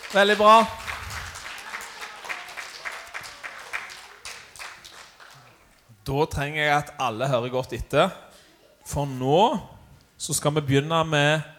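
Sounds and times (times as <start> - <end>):
audience applauding: 0.0 - 5.9
speech: 0.1 - 0.8, 6.1 - 8.3, 8.9 - 11.5.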